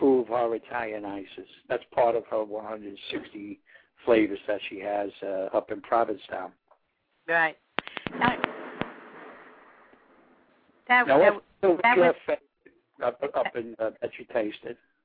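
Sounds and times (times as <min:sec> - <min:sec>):
speech: 0:00.3 - 0:06.6, 0:07.3 - 0:08.4, 0:10.9 - 0:14.9
loud crash of thunder: 0:08.1 - 0:10.7.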